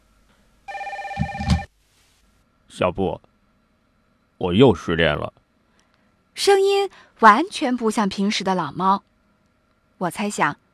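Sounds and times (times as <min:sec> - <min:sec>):
telephone ringing with electronic trill: 0:00.7 - 0:01.7
speech: 0:02.8 - 0:03.3, 0:04.4 - 0:05.4, 0:06.4 - 0:09.1, 0:10.0 - 0:10.6.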